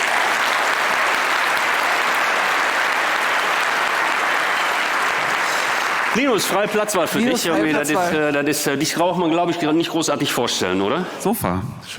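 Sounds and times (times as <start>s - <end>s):
audience applause welcoming a guest: 0.0s - 7.9s
speech: 6.2s - 11.9s.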